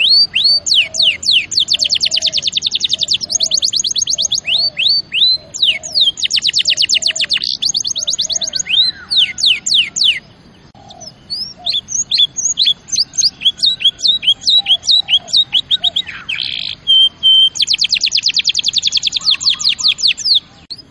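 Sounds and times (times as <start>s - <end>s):
canary song with rising whistles and rattling trill: 0.0s - 20.8s.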